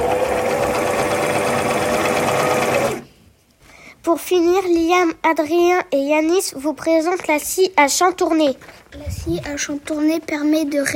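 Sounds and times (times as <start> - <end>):
sewing machine running: 0.0 - 3.0
speech: 4.1 - 10.9.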